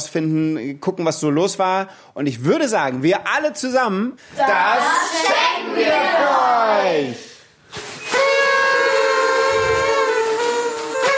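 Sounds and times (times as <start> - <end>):
speech: 0.1 - 7.9
party horns blowing: 7.9 - 11.1.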